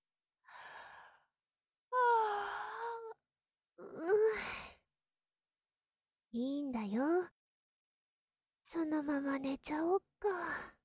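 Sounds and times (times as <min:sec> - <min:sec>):
yawn: 0:02.0 - 0:03.2
speech: 0:06.3 - 0:07.3, 0:08.7 - 0:10.8.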